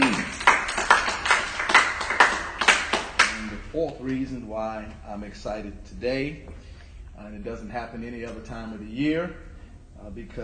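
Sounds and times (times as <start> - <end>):
audience hand clapping: 0.0 - 4.2
speech: 3.8 - 10.4.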